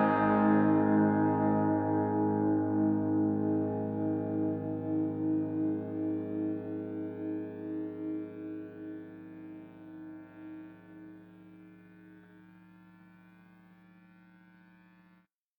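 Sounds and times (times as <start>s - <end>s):
guitar through bus effects: 0.0s - 11.5s.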